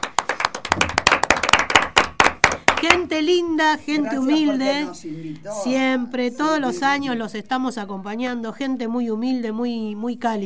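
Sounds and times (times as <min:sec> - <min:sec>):
applause for San Ignacio: 0:00.0 - 0:03.1
speech: 0:02.9 - 0:10.4.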